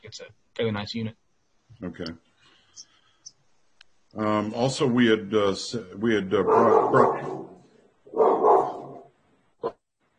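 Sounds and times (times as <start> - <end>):
speech: 0.1 - 1.2, 1.8 - 2.9, 4.1 - 7.5
dogs barking: 6.4 - 9.1.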